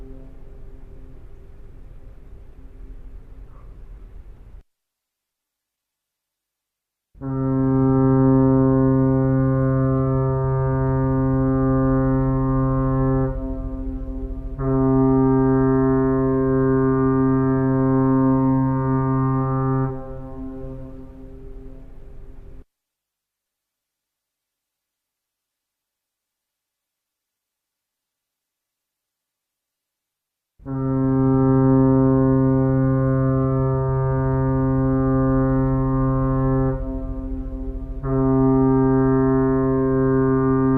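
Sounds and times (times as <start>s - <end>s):
fog horn: 0.0s - 1.6s, 7.2s - 22.6s, 30.6s - 40.7s.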